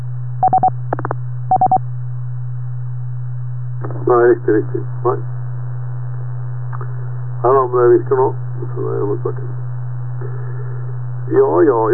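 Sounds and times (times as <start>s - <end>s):
constant low hum: 0.0s - 11.9s
DTMF dialing tones from radio: 0.4s - 0.7s, 1.5s - 1.8s
speech: 4.1s - 5.3s, 7.4s - 9.6s, 11.3s - 11.9s.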